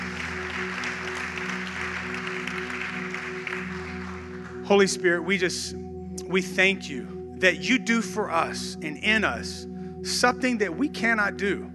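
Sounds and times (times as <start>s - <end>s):
audience clapping: 0.0s - 5.0s
speech: 4.7s - 11.7s.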